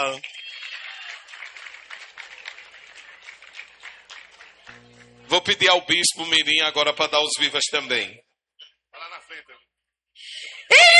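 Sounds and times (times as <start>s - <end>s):
speech: 0.0s - 0.4s, 5.4s - 8.2s
crowd applauding: 0.0s - 5.4s.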